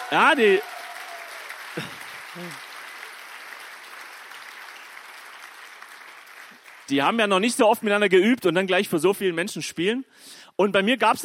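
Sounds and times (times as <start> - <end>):
church audience clapping for band: 0.0 - 7.6
speech: 0.1 - 0.8, 1.8 - 2.6, 6.9 - 11.2.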